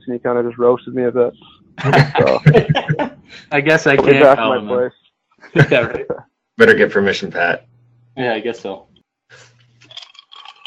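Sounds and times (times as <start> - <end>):
speech: 0.1 - 9.5
laughter: 1.8 - 3.4, 5.5 - 6.2
ice cubes clinking in a drink: 9.8 - 10.6.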